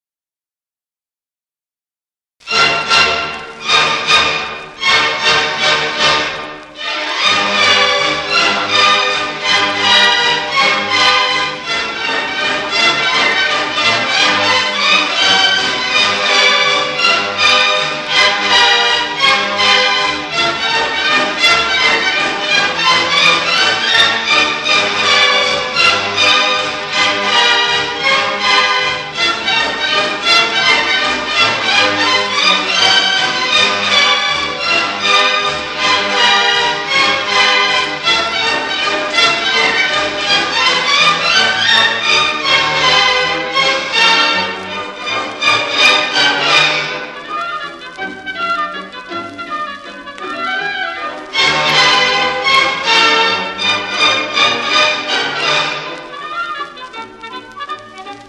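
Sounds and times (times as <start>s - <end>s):
mazurka: 2.4s - 58.2s.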